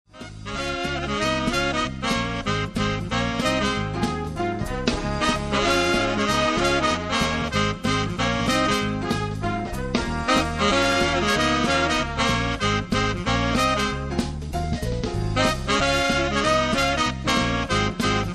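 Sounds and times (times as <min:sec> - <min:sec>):
big band medley: 0:00.1 - 0:18.3.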